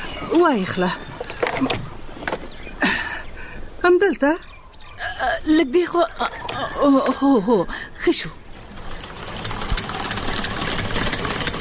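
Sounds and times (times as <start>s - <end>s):
speech: 0.2s - 1.9s, 3.8s - 4.5s, 5.2s - 8.4s
sewing machine running: 8.6s - 11.6s.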